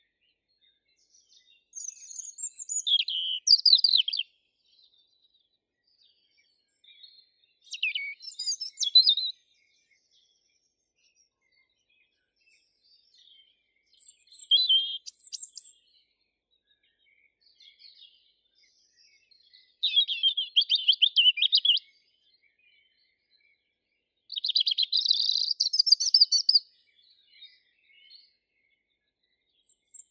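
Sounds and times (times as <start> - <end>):
European robin Erithacus rubecula singing: 1.0 - 4.3, 7.5 - 9.4, 13.3 - 15.9, 19.1 - 22.0, 24.3 - 28.7.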